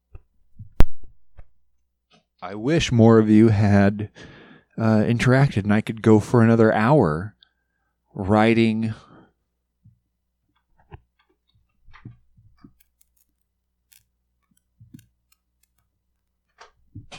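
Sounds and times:
speech: 2.4 - 7.4, 8.2 - 9.1
cord being hastily moved, rustling and clicking: 11.2 - 17.1.

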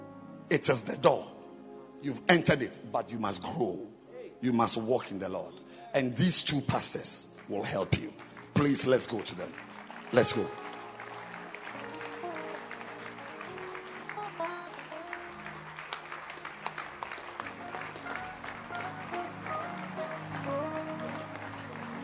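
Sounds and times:
speech: 0.5 - 1.4, 2.0 - 10.6
audience clapping: 6.8 - 22.0.

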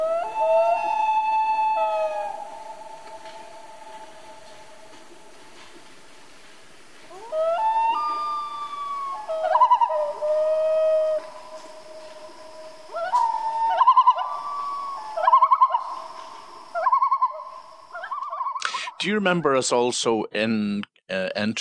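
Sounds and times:
common loon wailing: 0.0 - 5.4, 7.1 - 18.7
speech: 19.0 - 21.5.

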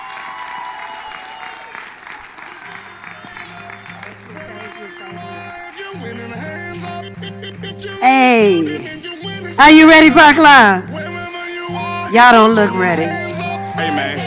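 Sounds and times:
crowd applause welcoming a gospel singer to the stage at a Park Lawn event: 0.0 - 6.0
music playing: 2.8 - 14.2
speech: 9.6 - 10.9, 12.1 - 13.2.

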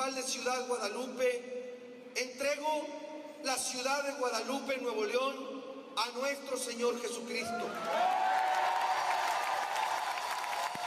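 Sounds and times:
speech: 0.0 - 8.4
crowd in Guadalupe, Nuevo León cheering and clapping at a public event: 7.6 - 10.8.

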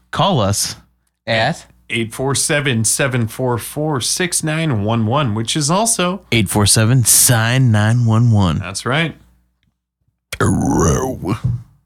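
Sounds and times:
speech: 0.2 - 9.2, 10.4 - 11.6
two people burping simultaneously: 10.4 - 11.6.

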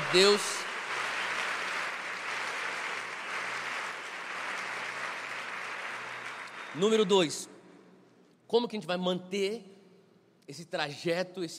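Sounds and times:
audience applause: 0.0 - 7.2
speech: 0.1 - 0.6, 6.8 - 7.5, 8.5 - 9.7, 10.5 - 11.5.

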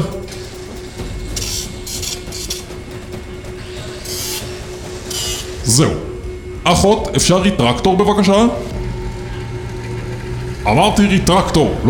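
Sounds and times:
steady low mechanical hum: 0.0 - 11.8
small saw cutting through bone: 1.4 - 2.7, 4.1 - 4.5, 5.1 - 5.5
speech: 5.7 - 8.7, 10.6 - 11.8.

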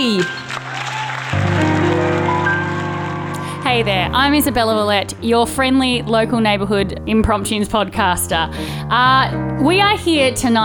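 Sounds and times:
speech: 0.0 - 0.4, 3.8 - 10.6
studio audience clapping for the MC: 0.0 - 3.9
sustained musical tones: 1.4 - 6.3.

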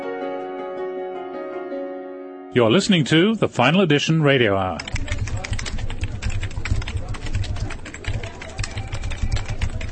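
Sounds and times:
speech: 2.5 - 5.2
incessant typing on keyboards: 4.6 - 9.9.

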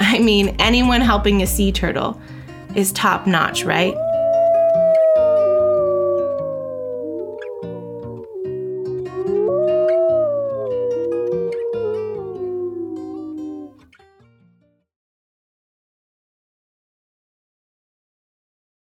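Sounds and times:
speech: 0.2 - 4.1
red wolves howling: 3.4 - 13.8.

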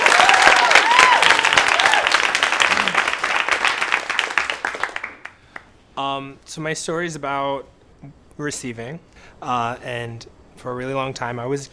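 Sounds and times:
audience applause: 0.0 - 5.4
whoops or whistles: 0.2 - 2.1
speech: 6.1 - 11.7.

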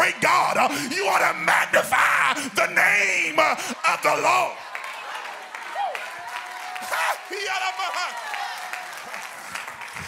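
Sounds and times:
speech: 0.2 - 4.7, 6.9 - 8.5
audience clapping hands: 4.1 - 10.0.

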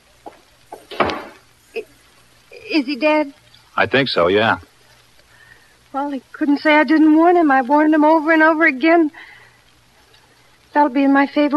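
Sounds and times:
door closing thud: 0.8 - 1.4
speech: 2.7 - 4.7, 6.0 - 9.3, 10.8 - 11.5.

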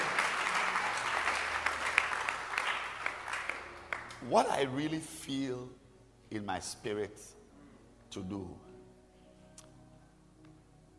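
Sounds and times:
church congregation clapping during a sermon: 0.0 - 4.7
speech: 4.3 - 7.4, 8.1 - 8.7.

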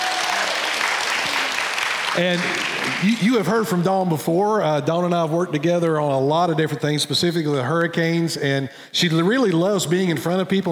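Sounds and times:
audience applause: 0.0 - 3.4
speech: 2.2 - 10.6.

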